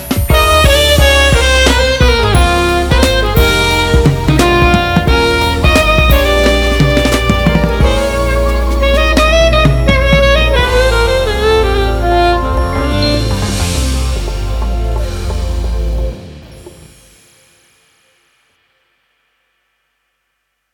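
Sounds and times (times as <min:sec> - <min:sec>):
saxophone playing a cover: 0:00.0 - 0:16.2.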